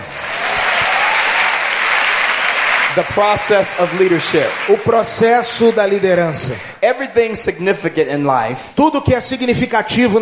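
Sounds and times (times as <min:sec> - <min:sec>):
audience applauding: 0:00.0 - 0:06.4
speech: 0:03.0 - 0:10.2.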